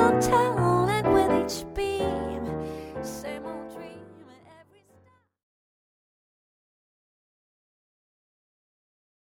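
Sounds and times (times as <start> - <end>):
piano: 0.0 - 5.2.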